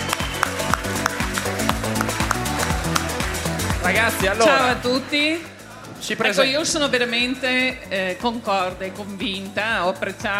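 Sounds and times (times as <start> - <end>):
audience applause: 0.0 - 3.4
speech: 4.0 - 10.3.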